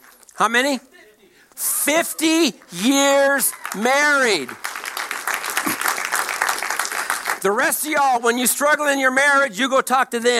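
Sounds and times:
speech: 0.4s - 0.9s, 1.6s - 4.6s, 7.4s - 10.3s
audience applause: 2.6s - 7.6s.

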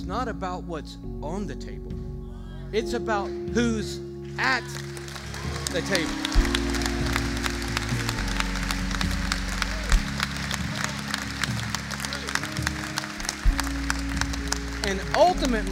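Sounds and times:
speech: 0.0s - 2.1s, 2.7s - 4.9s, 5.7s - 6.6s, 14.8s - 15.6s
audience applause: 4.6s - 15.6s.

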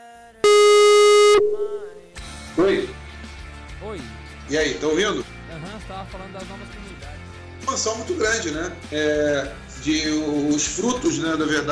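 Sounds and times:
phone busy tone after a dropped call: 0.4s - 2.0s
speech: 2.6s - 3.0s, 4.5s - 5.3s, 7.8s - 11.6s.

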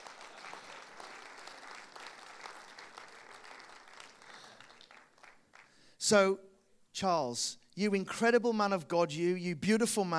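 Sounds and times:
audience applause: 0.0s - 5.8s
speech: 6.1s - 10.1s.

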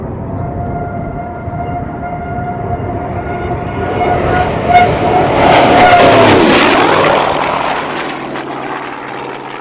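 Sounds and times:
fighter plane engine roar: 0.0s - 9.5s
F4U Corsair fighter plane dive-bombing whistle: 0.3s - 6.2s.

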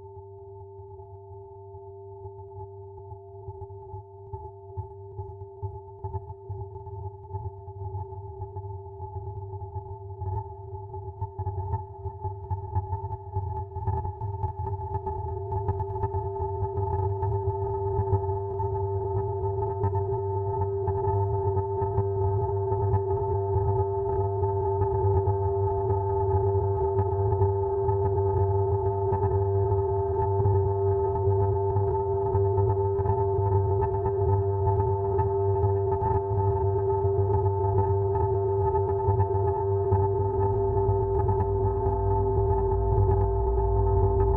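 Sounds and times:
raw processed sine tones: 0.0s - 44.3s
thick rumbling low drone: 40.1s - 44.3s.

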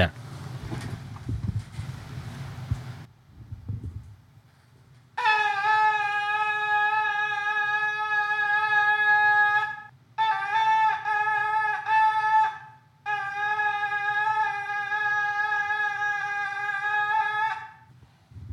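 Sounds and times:
goat horn shofar blasts: 5.2s - 17.9s.

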